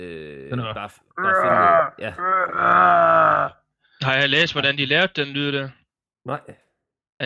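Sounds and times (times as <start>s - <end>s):
speech: 0.0s - 6.6s
baby sounds played at extremely slow speed: 1.2s - 3.6s.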